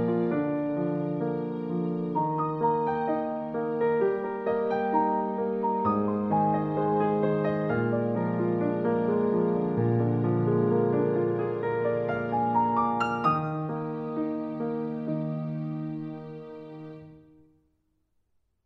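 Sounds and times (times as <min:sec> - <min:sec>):
piano improvisation: 0:00.0 - 0:17.5.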